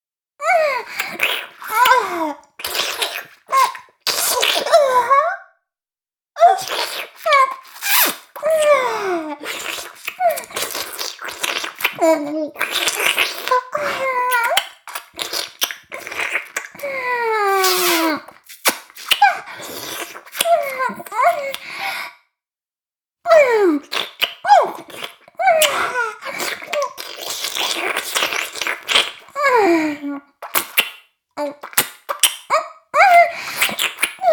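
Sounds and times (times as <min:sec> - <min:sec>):
oral sex sounds: 0:00.4 - 0:05.5, 0:06.4 - 0:22.2, 0:23.3 - 0:34.3.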